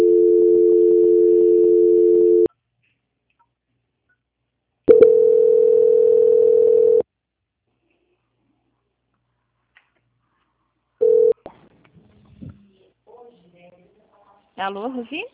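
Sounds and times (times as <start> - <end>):
telephone line tones during a call transfer: 0.0 - 2.5, 4.9 - 7.0, 11.0 - 11.4
speech: 14.6 - 15.3.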